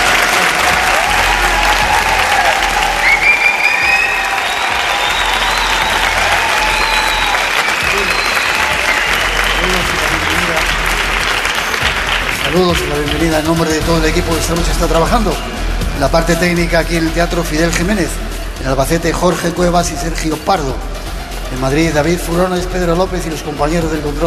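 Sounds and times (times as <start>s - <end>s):
audience giving loud applause in hall: 0.0s - 13.8s
speech: 12.6s - 20.9s, 21.5s - 24.2s.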